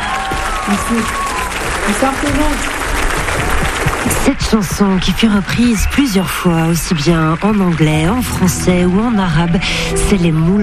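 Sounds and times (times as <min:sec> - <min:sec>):
audience applauding a composer: 0:00.0 - 0:09.6
speech: 0:00.7 - 0:01.2, 0:01.8 - 0:02.8, 0:03.4 - 0:10.6.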